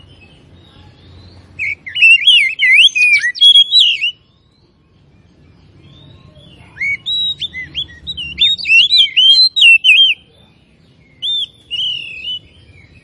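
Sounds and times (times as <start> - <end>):
Oriental magpie-robin whistling: 1.2 - 4.3, 5.8 - 10.3, 11.0 - 13.0.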